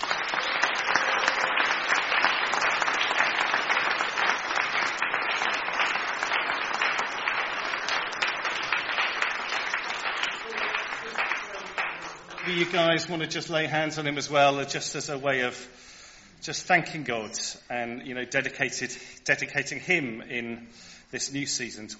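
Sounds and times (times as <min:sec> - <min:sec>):
audience applause: 0:00.0 - 0:13.2
speech: 0:12.5 - 0:21.9.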